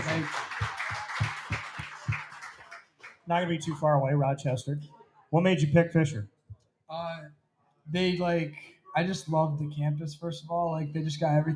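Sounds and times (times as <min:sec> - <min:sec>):
clapping: 0:00.0 - 0:03.9
speech: 0:00.2 - 0:00.4, 0:03.3 - 0:11.5.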